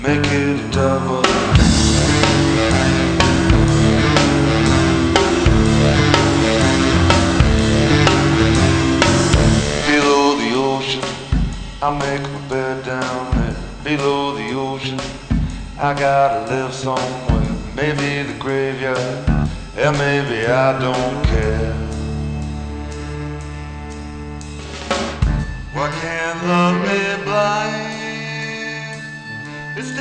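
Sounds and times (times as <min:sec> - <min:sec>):
rock music: 0:00.0 - 0:29.9.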